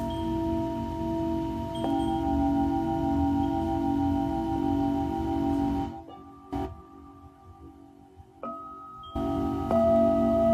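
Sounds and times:
Tibetan singing bowl ringing: 0.0s - 10.5s.

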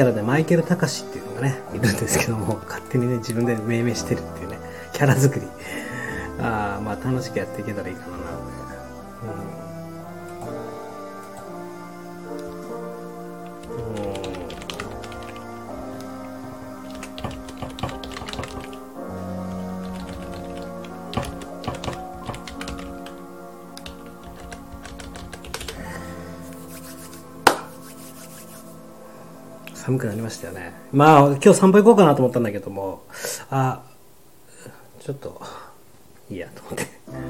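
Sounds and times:
speech: 0.0s - 8.6s, 9.2s - 9.6s, 29.9s - 33.9s, 34.6s - 35.6s, 36.3s - 37.2s
melodic music: 0.0s - 32.2s, 37.1s - 37.2s
computer keyboard typing while preparing documents: 13.4s - 16.1s, 16.8s - 18.8s, 19.4s - 23.2s, 23.8s - 25.9s.

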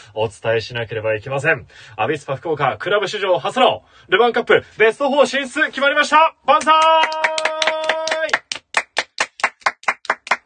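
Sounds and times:
speech: 0.2s - 7.4s
applause: 6.6s - 10.4s.

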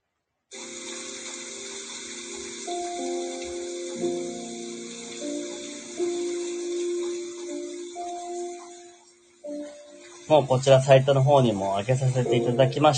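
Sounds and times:
piano music: 0.6s - 12.9s
rain: 0.6s - 12.9s
speech: 4.0s - 4.3s, 10.3s - 12.9s.

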